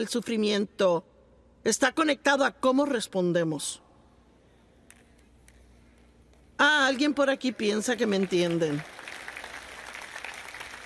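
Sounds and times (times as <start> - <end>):
speech: 0.0 - 3.8, 6.6 - 9.0
scattered audience applause: 8.1 - 10.8.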